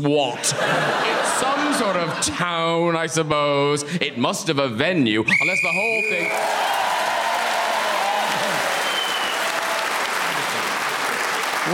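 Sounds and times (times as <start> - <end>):
speech: 0.0 - 6.8
laughter: 0.4 - 2.9, 7.8 - 8.8
audience round of applause: 6.2 - 11.7.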